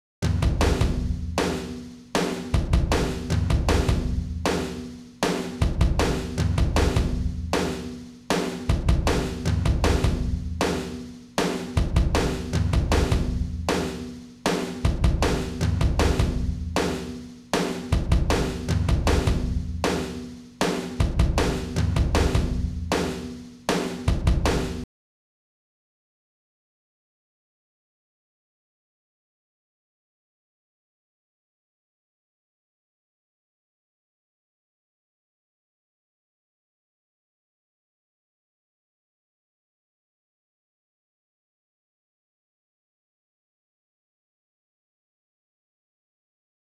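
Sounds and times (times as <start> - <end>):
drum kit: 0.2 - 24.9.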